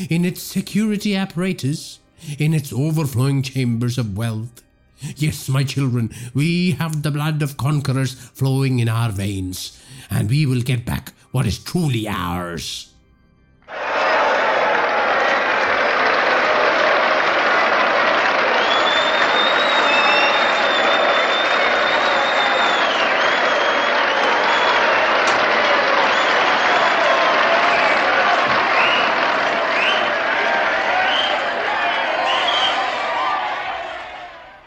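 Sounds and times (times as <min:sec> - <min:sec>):
speech: 0:00.0 - 0:12.9
noisy applause in a chamber: 0:13.7 - 0:34.6.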